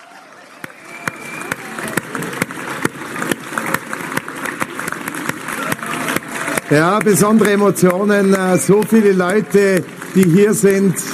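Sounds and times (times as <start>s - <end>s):
crowd applause: 0.0s - 11.1s
speech: 6.7s - 11.1s.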